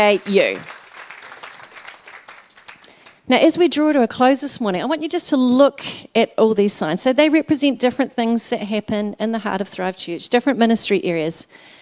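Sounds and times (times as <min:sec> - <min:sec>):
speech: 0:00.0 - 0:00.8, 0:03.3 - 0:11.8
audience applauding: 0:00.0 - 0:03.2
audience cheering: 0:00.2 - 0:02.8.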